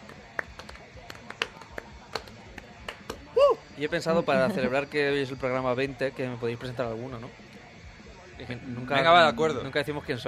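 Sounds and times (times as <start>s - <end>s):
soft polite golf clap: 0.0s - 3.3s
speech: 3.8s - 7.5s, 8.4s - 10.2s.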